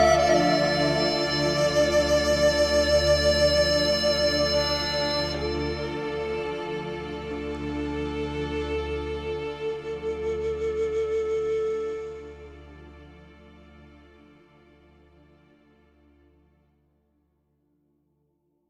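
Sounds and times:
scene music: 0:00.0 - 0:11.3.

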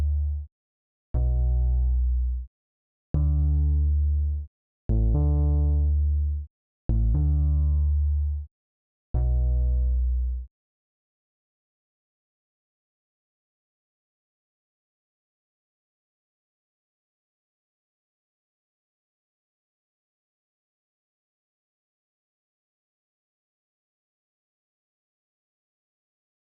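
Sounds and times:
bass: 0:00.0 - 0:00.5, 0:01.2 - 0:02.5, 0:03.1 - 0:08.5, 0:09.1 - 0:10.5.

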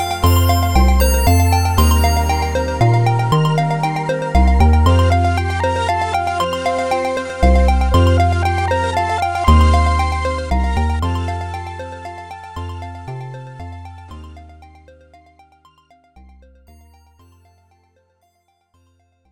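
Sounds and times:
startup music: 0:00.0 - 0:11.2.

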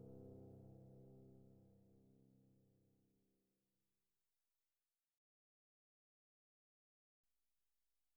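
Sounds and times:
piano music: 0:00.0 - 0:02.1.

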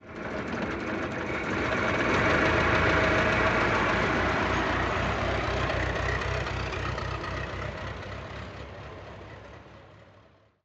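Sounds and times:
Ford Model T car idling and departing: 0:00.0 - 0:10.6.

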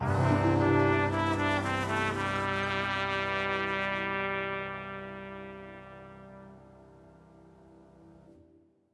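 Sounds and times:
music sting: 0:00.0 - 0:03.9.

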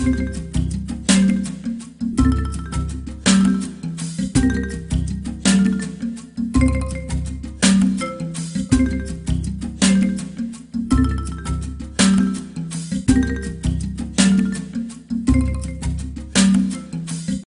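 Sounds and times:
jungle level music: 0:00.0 - 0:17.4.

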